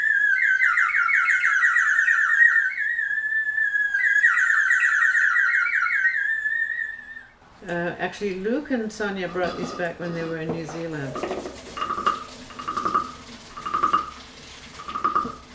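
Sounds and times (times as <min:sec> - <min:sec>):
water-filled whistle blown: 0:00.0 - 0:07.4, 0:11.8 - 0:14.2, 0:14.8 - 0:15.5
speech: 0:07.7 - 0:11.6.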